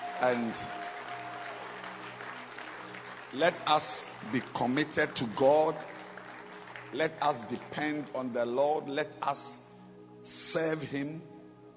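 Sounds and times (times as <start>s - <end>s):
audience clapping hands: 0.0s - 8.7s
speech: 0.2s - 1.0s, 3.3s - 5.9s, 6.9s - 9.6s, 10.2s - 11.3s.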